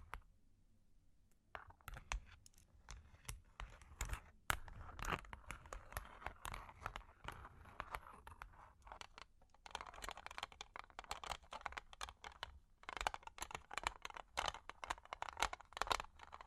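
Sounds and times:
long claws tapping and scratching: 1.6s - 16.4s.

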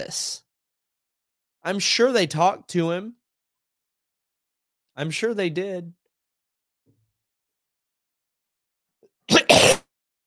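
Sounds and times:
speech: 0.0s - 0.4s, 1.6s - 3.2s, 5.0s - 6.0s
harsh cough: 9.3s - 9.9s.

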